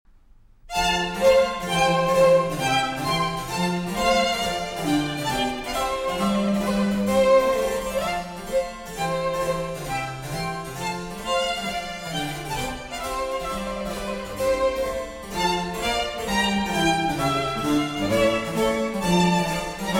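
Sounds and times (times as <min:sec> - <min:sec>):
trio sonata in F for two violins and continuo: 0:00.5 - 0:19.9.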